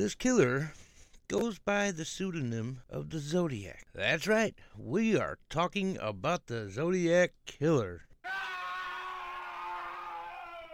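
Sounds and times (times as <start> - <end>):
speech: 0.0 - 8.4
person screaming: 8.2 - 10.7.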